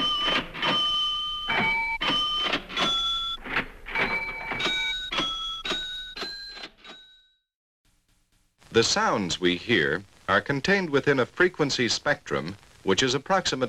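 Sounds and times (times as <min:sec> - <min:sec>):
music played on a cash register: 0:00.0 - 0:07.4
speech: 0:08.8 - 0:13.6.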